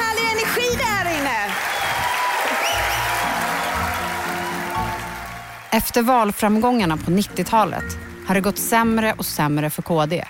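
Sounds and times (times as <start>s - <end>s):
large crowd of party members applauding: 0.4s - 6.2s
faint cheering: 1.5s - 5.6s
speech: 5.7s - 10.2s.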